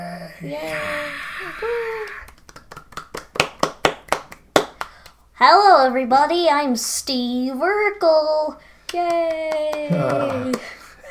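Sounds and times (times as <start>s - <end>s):
speech: 0.0s - 2.2s, 5.4s - 10.8s
sitcom audience whooping and cheering: 0.7s - 2.4s
sitcom audience rhythmic clapping: 1.9s - 5.2s, 8.8s - 10.9s.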